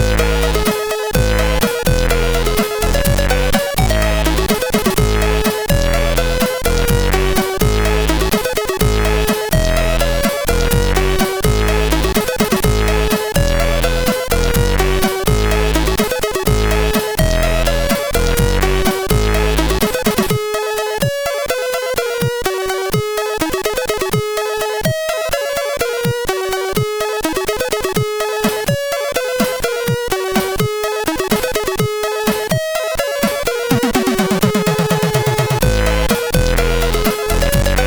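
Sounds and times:
SID CSG8580R5 chip music mix: 0:00.0 - 0:37.8.

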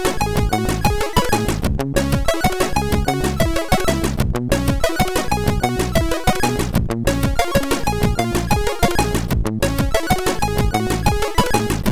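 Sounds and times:
SID chiptune save jingle: 0:00.0 - 0:11.8.

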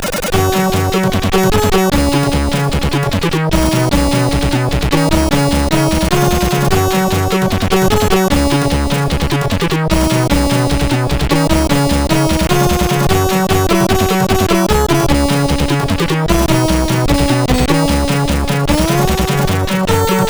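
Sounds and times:
SID CSG8580R5 chiptune music: 0:00.2 - 0:20.2.

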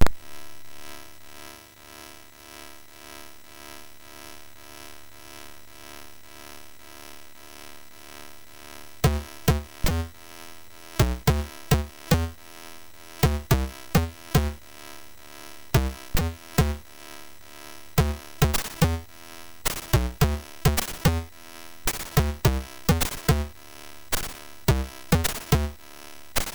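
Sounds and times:
SID chip MOS6581R3 groove: 0:09.0 - 0:10.2, 0:11.0 - 0:12.4, 0:13.2 - 0:14.6, 0:15.8 - 0:16.9, 0:18.0 - 0:21.3, 0:21.9 - 0:25.8.

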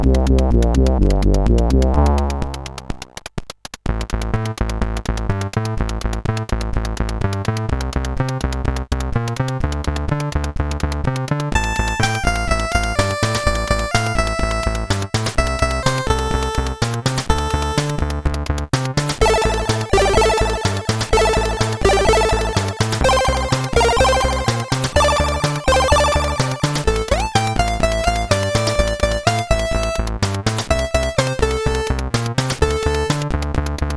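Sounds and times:
SID chip synth bass: 0:00.0 - 0:03.2, 0:03.9 - 0:33.9.

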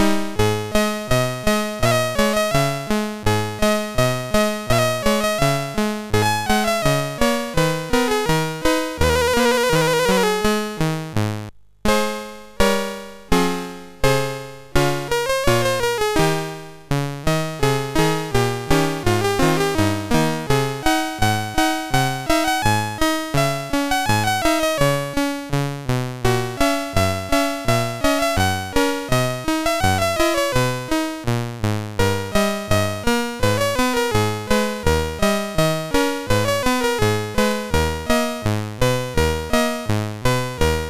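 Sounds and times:
MOS6581R3 chip game music: 0:00.0 - 0:40.8.

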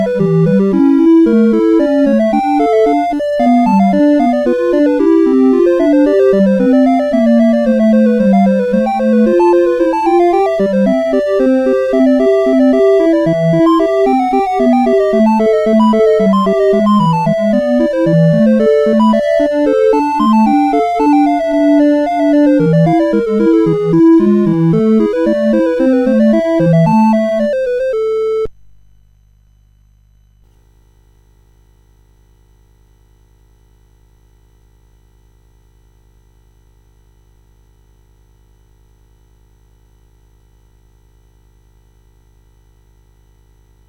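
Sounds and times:
chiptune music on CSG8580R5 chip: 0:00.0 - 0:28.5.

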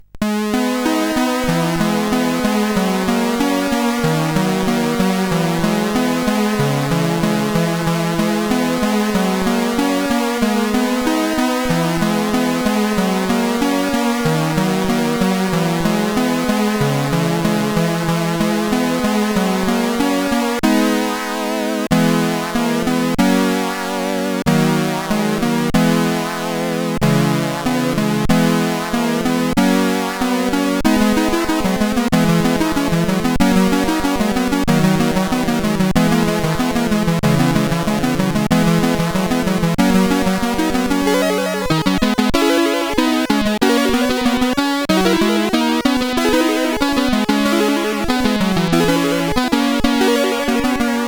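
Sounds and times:
piano played on SID CSG8580R5 chip: 0:00.0 - 0:51.0.

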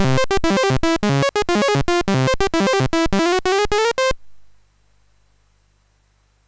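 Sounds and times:
MOS 6581 SID chip game music: 0:00.0 - 0:04.2.

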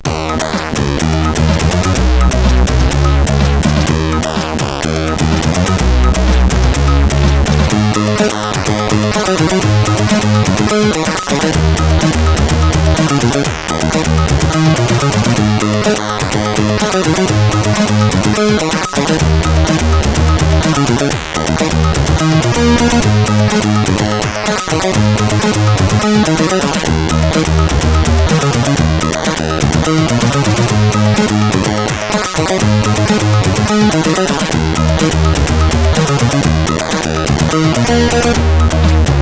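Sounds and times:
CSG8580R5 chip remix: 0:00.0 - 0:39.2.

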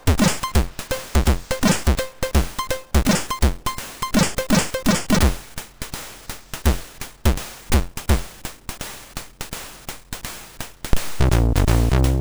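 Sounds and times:
funky chiptune music on MOS6581 sound chip: 0:00.0 - 0:05.3, 0:11.2 - 0:12.1.

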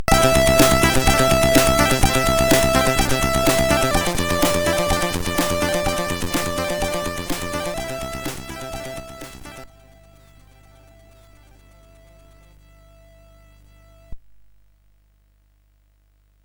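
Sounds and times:
hi-res demo drum kit CSG8580R5: 0:00.0 - 0:09.6.

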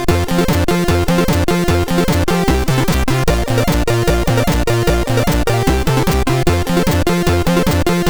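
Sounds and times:
MOS6581R2 SID chip music: 0:00.1 - 0:08.0.

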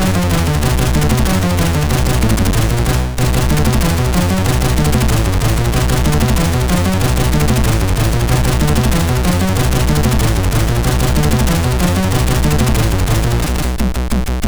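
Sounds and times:
techno music on a MOS6581R4 sound chip: 0:00.0 - 0:14.4.

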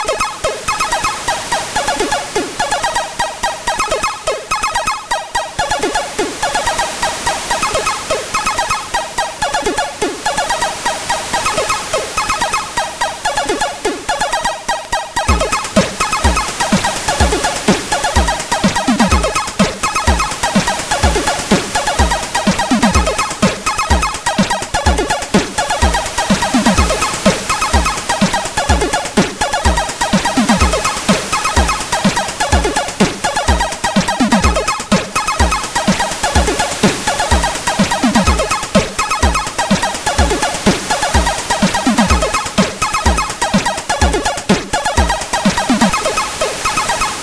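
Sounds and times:
beach chiptune song on SID CSG8580R5 chip: 0:00.0 - 0:47.2.

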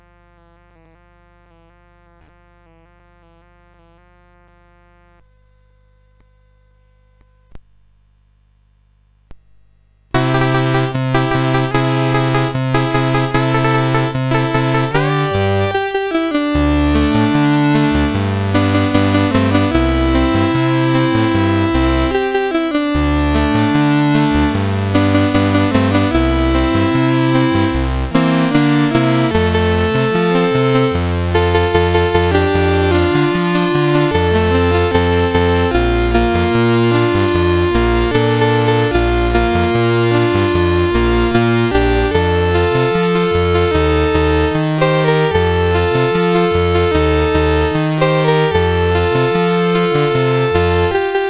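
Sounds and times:
CSG 8580 sound chip: 0:10.2 - 0:51.2.

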